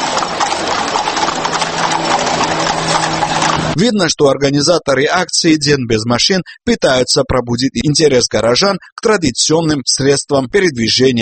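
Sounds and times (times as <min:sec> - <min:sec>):
hooves of a horse pulling a phaeton carriage clip-clopping: 0:00.0 - 0:03.8
speech: 0:03.8 - 0:11.2.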